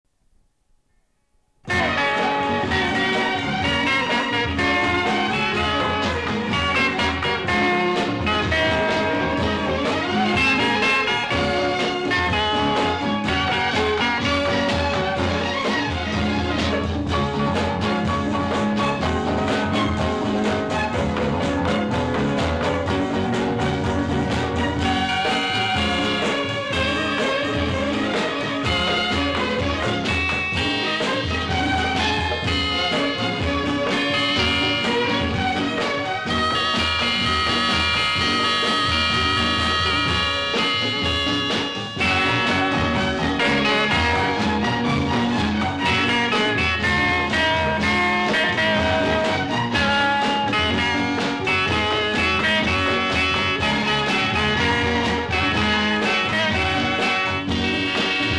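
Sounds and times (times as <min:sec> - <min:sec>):
theme music: 0:01.7 - 0:58.3.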